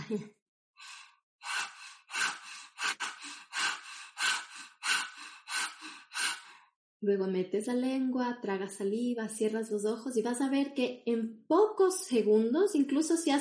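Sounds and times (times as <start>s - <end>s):
speech: 0.1s - 0.9s, 7.0s - 13.3s
person panting through open mouth with tongue out as yoga breathing exercise: 0.8s - 6.6s.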